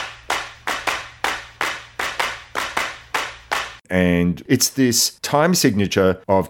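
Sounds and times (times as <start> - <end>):
hand claps in a jazz fusion track: 0.0 - 3.8
speech: 3.9 - 6.4.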